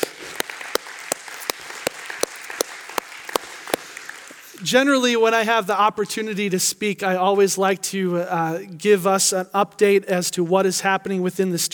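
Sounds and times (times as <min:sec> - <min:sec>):
church congregation applauding: 0:00.0 - 0:05.0
speech: 0:04.6 - 0:11.7.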